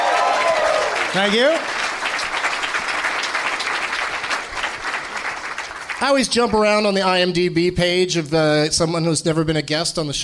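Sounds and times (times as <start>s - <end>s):
audience applause for a guest: 0.0s - 6.8s
speech: 1.2s - 1.8s, 6.0s - 10.2s.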